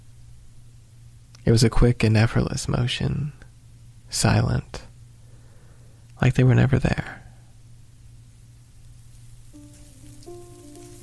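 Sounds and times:
low constant hum: 0.0 - 11.0
speech: 1.4 - 3.4, 4.1 - 4.9, 6.2 - 7.2
grill sizzling and popping: 7.9 - 11.0
thin sustained tones: 8.8 - 11.0.

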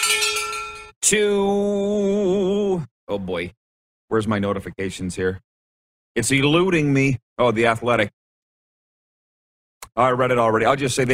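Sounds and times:
breaking news bell: 0.0 - 1.0
speech: 1.0 - 2.1, 2.7 - 5.5, 6.2 - 8.2, 10.0 - 11.1.

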